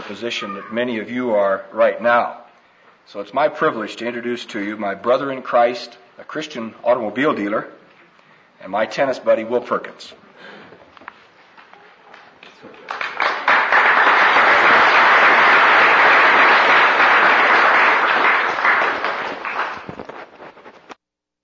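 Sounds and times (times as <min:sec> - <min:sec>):
speech: 0:00.1 - 0:02.4, 0:03.1 - 0:07.8, 0:08.6 - 0:10.6
audience applause after an introduction: 0:12.8 - 0:20.3.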